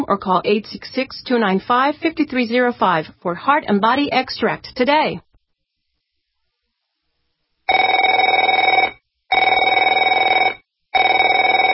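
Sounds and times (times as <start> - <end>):
speech: 0.0 - 5.3
telephone ringing with an electronic trill: 7.7 - 11.7.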